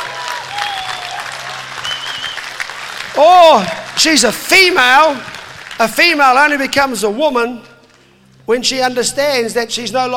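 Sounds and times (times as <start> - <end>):
audience applause: 0.0 - 6.5
speech: 3.2 - 7.7, 8.5 - 10.1.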